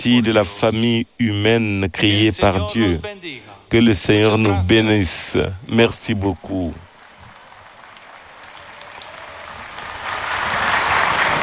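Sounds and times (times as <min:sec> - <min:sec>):
speech: 0:00.0 - 0:06.9
Spanish-speaking pilgrims applauding in square: 0:05.7 - 0:11.4.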